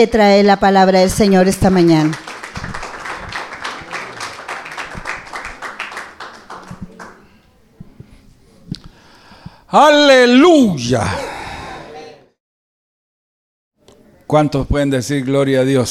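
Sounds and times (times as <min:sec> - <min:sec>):
speech: 0:00.0 - 0:02.3, 0:09.7 - 0:11.3, 0:14.3 - 0:15.8
audience applause: 0:01.4 - 0:07.3.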